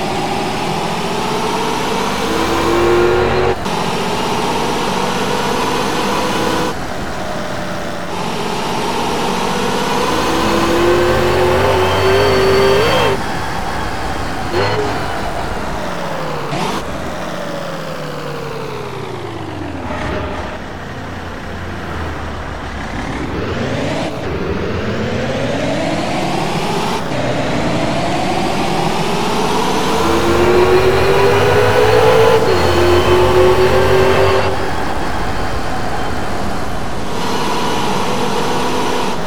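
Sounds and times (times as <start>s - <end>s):
BMW 530d engine: 0.0s - 39.2s.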